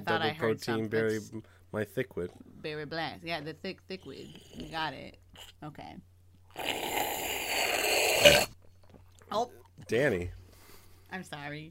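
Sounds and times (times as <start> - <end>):
speech: 0.0 - 6.8, 9.3 - 10.4, 11.1 - 11.6
burp: 6.5 - 8.6.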